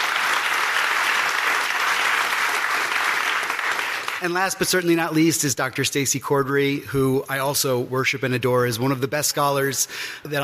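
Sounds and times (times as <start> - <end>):
audience applause: 0.0 - 4.3
speech: 4.2 - 10.4.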